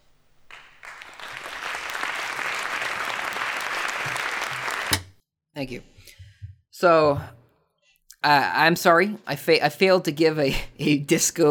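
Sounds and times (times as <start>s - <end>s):
canned round of applause sound effect: 0.0s - 5.2s
speech: 5.6s - 6.2s, 6.8s - 7.4s, 8.2s - 11.4s.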